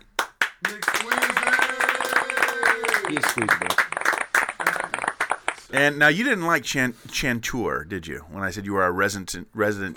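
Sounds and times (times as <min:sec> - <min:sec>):
applause: 0:00.2 - 0:05.8
speech: 0:03.1 - 0:03.9, 0:05.7 - 0:09.9.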